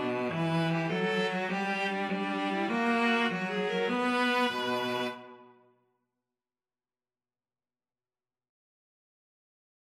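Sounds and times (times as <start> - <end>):
string quartet playing in a hall: 0.0 - 5.4.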